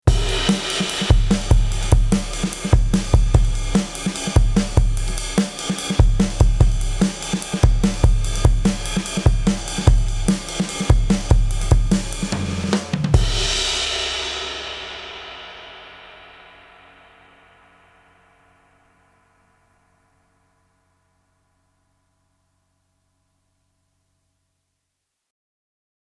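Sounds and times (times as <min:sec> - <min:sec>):
drum bus with effects and compression: 0:00.0 - 0:16.9.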